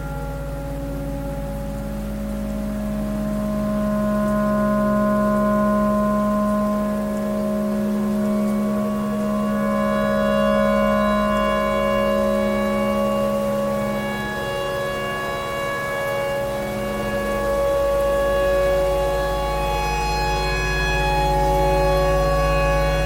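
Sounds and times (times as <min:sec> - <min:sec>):
clarinet imitating a tornado siren: 0:00.0 - 0:23.0.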